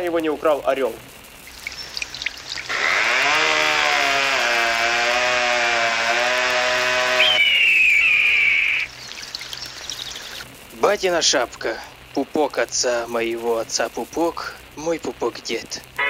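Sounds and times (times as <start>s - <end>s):
speech: 0.0s - 1.2s, 10.9s - 15.9s
chainsaw cutting wood: 2.7s - 8.6s.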